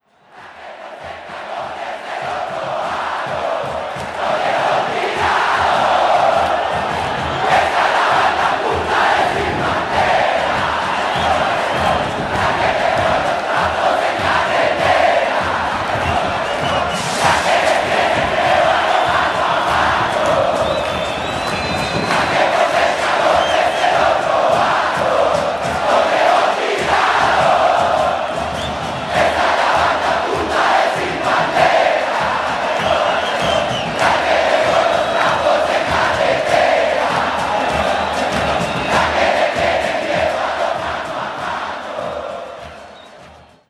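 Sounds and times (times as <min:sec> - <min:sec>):
crowd: 0:00.0 - 0:43.6.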